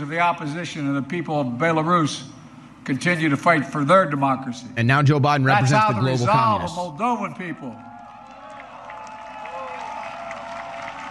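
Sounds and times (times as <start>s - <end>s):
speech: 0.0s - 7.9s
crowd cheering at a political rally: 7.6s - 11.0s.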